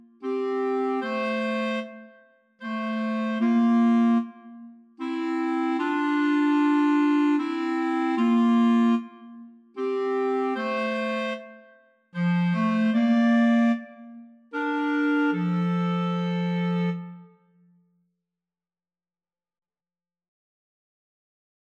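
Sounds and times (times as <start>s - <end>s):
clarinet trio: 0.2s - 17.4s.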